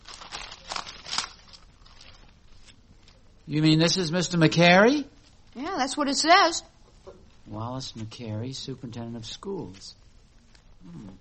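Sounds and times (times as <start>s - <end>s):
newspaper pages rustling: 0.0s - 3.3s
speech: 3.5s - 6.7s, 7.5s - 10.0s, 10.8s - 11.1s.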